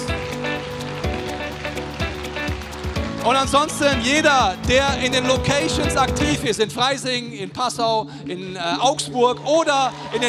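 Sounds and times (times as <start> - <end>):
audience applause: 0.0 - 5.9
low sustained musical tones: 0.0 - 9.9
speech: 3.2 - 10.2.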